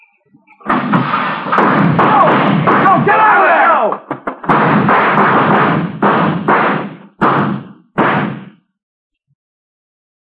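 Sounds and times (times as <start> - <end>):
loud booming gunshots: 0.6 - 8.6.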